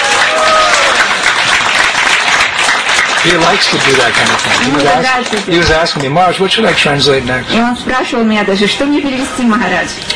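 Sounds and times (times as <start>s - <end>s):
audience applause: 0.0s - 6.0s
speech: 3.2s - 10.1s.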